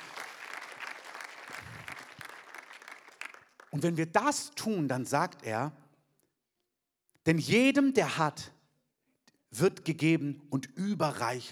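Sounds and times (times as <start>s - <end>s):
audience applause: 0.0s - 3.7s
speech: 3.8s - 5.8s, 7.2s - 8.6s, 9.5s - 11.5s.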